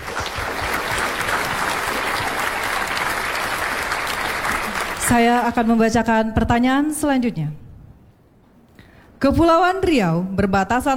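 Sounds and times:
crowd applauding: 0:00.0 - 0:05.6
speech: 0:05.1 - 0:07.6, 0:09.2 - 0:10.9.

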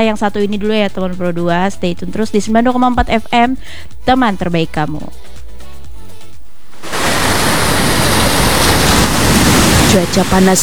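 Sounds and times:
speech: 0:00.0 - 0:05.4, 0:09.9 - 0:10.6
sea waves at a beach: 0:06.4 - 0:10.6.

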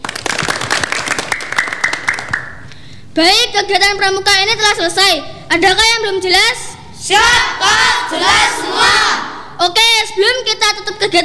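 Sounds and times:
audience applause: 0:00.0 - 0:02.8
speech: 0:03.2 - 0:11.2.

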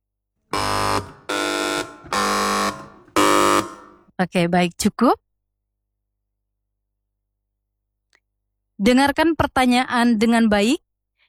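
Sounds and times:
quiz buzzer bells pressed simultaneously: 0:00.5 - 0:04.1
speech: 0:04.2 - 0:05.2, 0:08.8 - 0:10.9.

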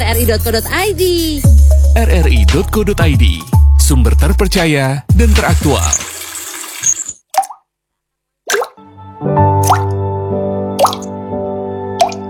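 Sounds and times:
speech: 0:00.2 - 0:06.1
water drops plopping: 0:07.3 - 0:07.7, 0:08.5 - 0:08.8, 0:09.6 - 0:10.0, 0:10.8 - 0:11.1, 0:12.0 - 0:12.2.

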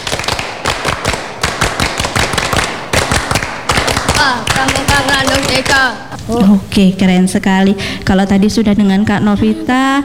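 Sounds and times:
group clapping a scout-style rhythm: 0:00.0 - 0:06.3
speech: 0:04.2 - 0:10.0.

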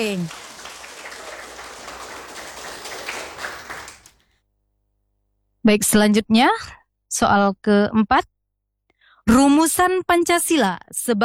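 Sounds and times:
speech: 0:00.0 - 0:00.4, 0:05.6 - 0:08.3, 0:09.3 - 0:11.2
group doing a rhythmic spirit clap for a quiz team: 0:00.0 - 0:04.2.

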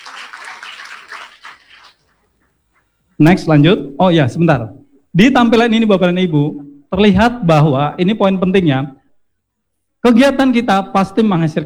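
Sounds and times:
audience applause: 0:00.0 - 0:02.1
speech: 0:03.2 - 0:09.0, 0:10.0 - 0:11.6.

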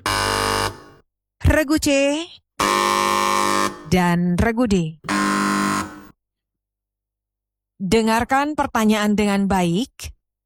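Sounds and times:
quiz contestants pressing their buzzer bells: 0:00.0 - 0:01.0, 0:02.6 - 0:04.0, 0:05.1 - 0:06.1
speech: 0:01.6 - 0:03.2, 0:03.9 - 0:05.1, 0:07.8 - 0:10.2.

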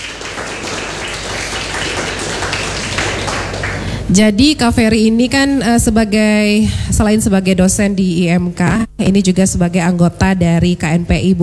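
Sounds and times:
applause: 0:00.0 - 0:04.4
speech: 0:04.1 - 0:11.4.

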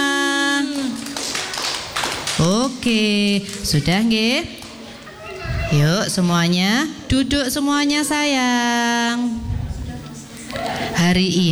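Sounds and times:
children clapping after singing a song together: 0:00.5 - 0:04.0, 0:10.4 - 0:11.0
speech: 0:02.4 - 0:04.6, 0:05.7 - 0:09.5, 0:10.5 - 0:11.5.

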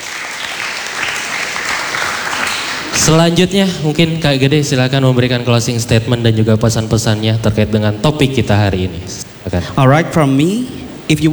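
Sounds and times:
audience applause: 0:00.0 - 0:03.4
speech: 0:03.0 - 0:11.3.

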